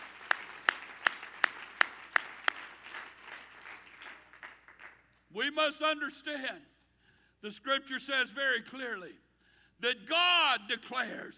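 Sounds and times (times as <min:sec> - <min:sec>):
people clapping hands to the Lord: 0:00.0 - 0:05.3
speech: 0:05.4 - 0:06.7, 0:07.4 - 0:09.2, 0:09.8 - 0:11.3.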